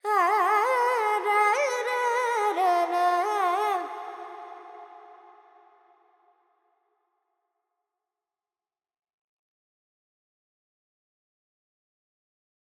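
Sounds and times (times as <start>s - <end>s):
Carnatic female vocal alaps in Dorian mode: 0.0s - 5.5s.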